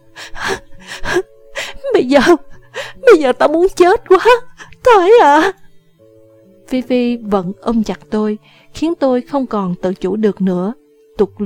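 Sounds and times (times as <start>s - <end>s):
woman panting heavily and breathlessly: 0.0s - 3.0s
speech: 2.0s - 2.5s, 3.1s - 5.6s, 6.7s - 11.4s.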